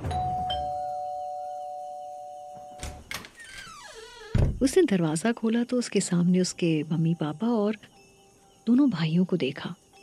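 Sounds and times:
doorbell ringing: 0.0s - 2.8s
speech: 4.6s - 7.9s, 8.7s - 9.8s.

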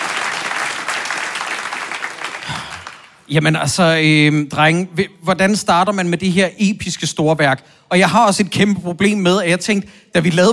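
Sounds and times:
audience clapping: 0.0s - 3.3s
speech: 3.3s - 10.5s.

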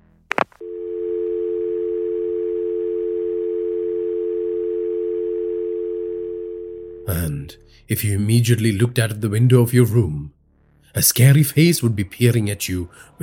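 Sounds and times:
telephone dial tone after the caller hangs up: 0.3s - 7.1s
speech: 7.5s - 13.2s.

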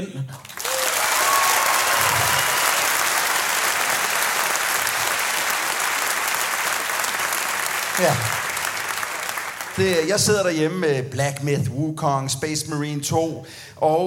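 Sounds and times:
speech: 0.0s - 0.5s, 8.0s - 8.4s, 9.8s - 14.0s
audience clapping: 0.3s - 10.8s.

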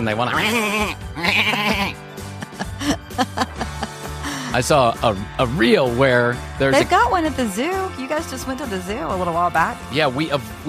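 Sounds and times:
speech: 0.0s - 2.1s, 4.5s - 10.6s
goat bleating: 0.3s - 2.0s
laughter: 1.2s - 5.2s.

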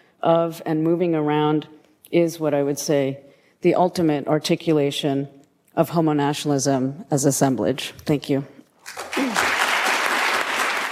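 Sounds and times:
speech: 0.2s - 9.0s
applause in a barbershop: 8.8s - 10.9s.

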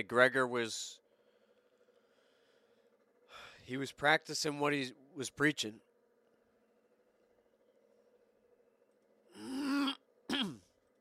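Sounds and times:
speech: 0.0s - 1.0s, 3.7s - 5.9s
person clearing throat: 9.3s - 10.8s.

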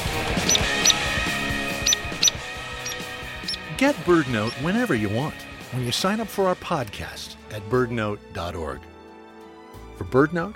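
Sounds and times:
hairy woodpecker peek calls: 0.0s - 4.9s
speech: 3.8s - 8.9s, 10.0s - 10.5s.

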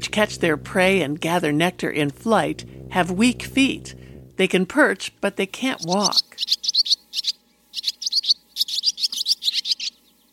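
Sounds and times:
swift chattering: 0.0s - 4.4s
speech: 0.2s - 7.3s.

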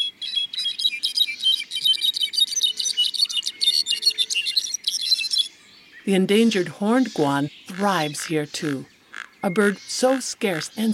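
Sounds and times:
rufous-browed wrens singing in the forest: 0.0s - 10.9s
brown-backed solitaires singing: 6.1s - 10.9s
speech: 6.1s - 10.9s.

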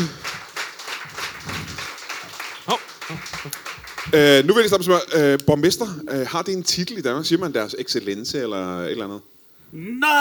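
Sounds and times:
speech: 0.0s - 0.2s, 2.7s - 10.2s
audience applause greeting a mayor at a live show in Greve: 0.0s - 4.5s.

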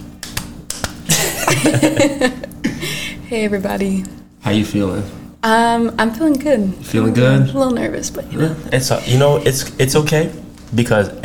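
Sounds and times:
hand clapping: 0.2s - 1.8s
laughter: 1.1s - 3.0s
speech: 1.5s - 11.2s.

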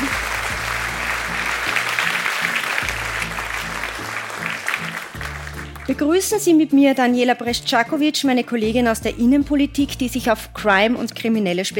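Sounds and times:
audience applause welcoming a guest speaker: 0.0s - 6.3s
speech: 5.9s - 11.7s.

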